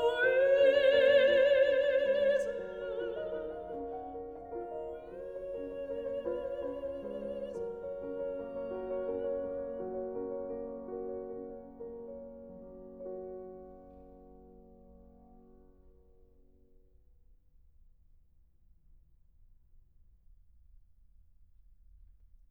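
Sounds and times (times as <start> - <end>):
person singing: 0.0 - 10.3
piano: 0.0 - 17.2.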